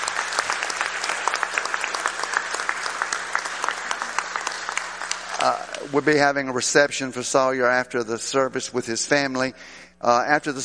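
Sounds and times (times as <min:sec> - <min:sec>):
round of applause: 0:00.0 - 0:06.0
speech: 0:05.4 - 0:10.6.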